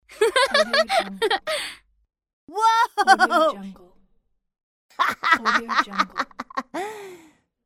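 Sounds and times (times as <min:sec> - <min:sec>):
boy laughing: 0:00.2 - 0:01.7, 0:02.6 - 0:03.5, 0:05.0 - 0:06.9.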